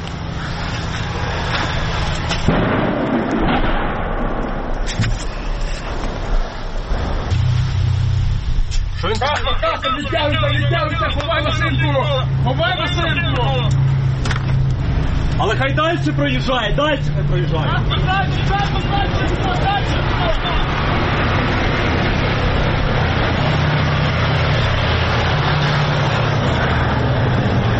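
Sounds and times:
tank engine rumbling: 0:00.0 - 0:27.7
speech: 0:09.7 - 0:13.8, 0:15.4 - 0:20.8.

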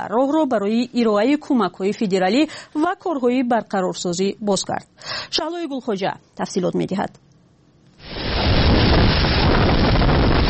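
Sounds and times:
speech: 0:00.0 - 0:07.3
storm wind: 0:08.0 - 0:10.4.

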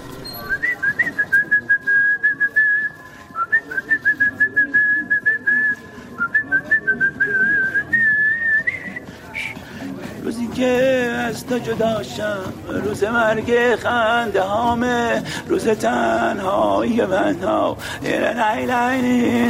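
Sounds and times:
person whistling: 0:00.2 - 0:09.6
speech: 0:10.6 - 0:19.4.

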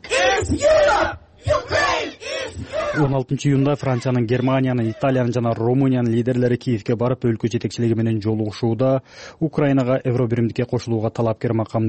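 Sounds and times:
pro-Ukraine protesters chanting shouts at a street rally: 0:00.0 - 0:03.2
speech: 0:00.4 - 0:01.5, 0:02.9 - 0:11.8.

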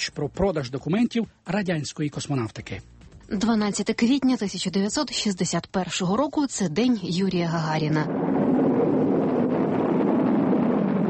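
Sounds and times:
speech: 0:00.0 - 0:08.4
rocket launch of crewed spacecraft from Baikonur Cosmodrome: 0:07.5 - 0:11.0.

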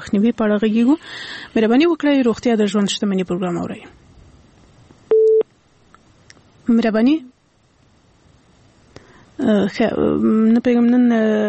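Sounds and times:
speech: 0:00.0 - 0:04.0, 0:06.7 - 0:07.3, 0:09.4 - 0:11.4
quiet telephone line noise: 0:01.7 - 0:11.4
telephone line tone on a radio phone-in after a caller is cut off: 0:05.1 - 0:05.4.

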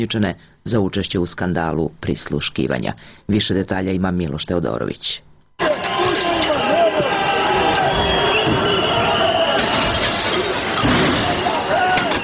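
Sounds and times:
speech: 0:00.0 - 0:05.3
crowd of protesters shouting in a clash with police: 0:05.6 - 0:12.2.

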